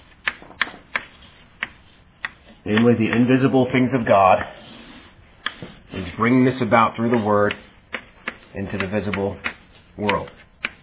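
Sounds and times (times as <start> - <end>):
handwriting taps on a board: 0.2 - 3.2, 5.4 - 5.7, 7.0 - 10.8
speech: 2.6 - 4.6, 5.9 - 7.6, 8.5 - 10.4.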